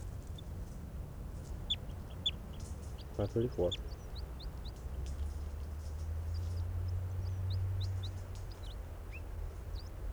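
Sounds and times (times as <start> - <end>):
bird clucking: 0.2 - 5.8, 6.3 - 9.9
high-pitched bird chirps: 1.6 - 4.8.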